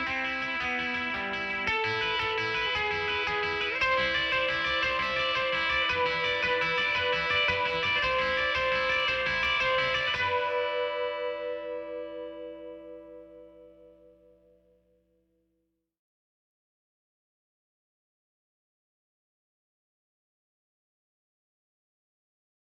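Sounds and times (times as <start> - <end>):
guitar: 0.0 - 15.2.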